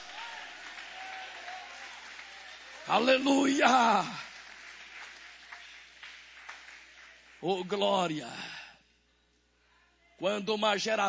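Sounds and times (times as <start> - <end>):
audience applauding: 0.0 - 7.8
speech: 2.9 - 4.3, 7.4 - 8.5, 10.2 - 11.0.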